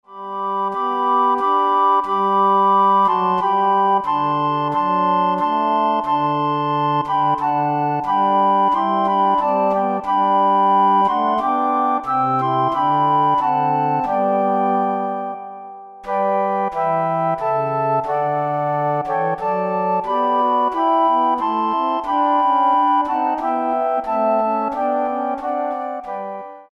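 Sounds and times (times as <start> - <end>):
flute ensemble playing: 0.4 - 26.7.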